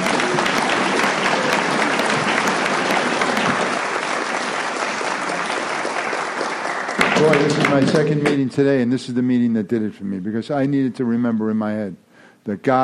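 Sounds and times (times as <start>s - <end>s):
applause: 0.0s - 8.5s
speech: 7.3s - 12.8s.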